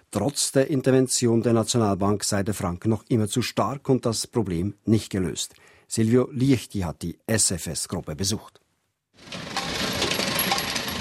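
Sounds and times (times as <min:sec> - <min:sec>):
speech: 0:00.1 - 0:08.6
pressing machines rattling and humming in a large factory hall: 0:09.2 - 0:10.9.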